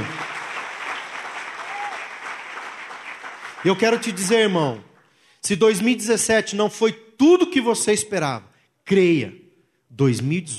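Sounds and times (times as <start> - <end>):
audience applause: 0.0 - 4.8
speech: 3.6 - 10.5.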